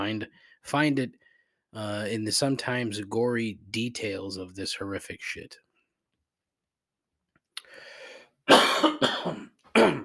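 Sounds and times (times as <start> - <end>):
speech: 0.0 - 5.6, 8.5 - 10.0
harsh coughing from something stuck in the throat: 8.5 - 10.0
throat clearing from something stuck in the throat: 8.5 - 10.0.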